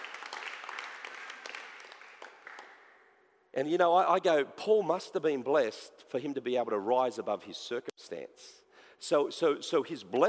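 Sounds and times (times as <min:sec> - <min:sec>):
audience clapping: 0:00.0 - 0:03.0
speech: 0:03.6 - 0:10.2.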